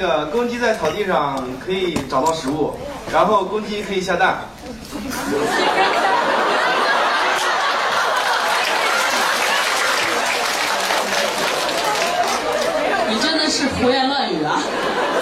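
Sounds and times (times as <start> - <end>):
speech: 0.0 - 6.2, 13.6 - 15.0
laughter: 5.0 - 13.3, 14.2 - 15.2
audience applause: 5.9 - 13.2.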